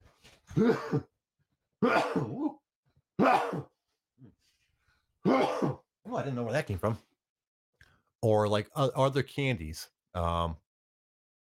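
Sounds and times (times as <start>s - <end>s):
speech: 0.6s - 1.1s, 1.8s - 2.6s, 6.1s - 7.1s, 8.2s - 10.6s
person sneezing: 1.8s - 2.6s, 3.2s - 3.7s, 5.2s - 5.8s.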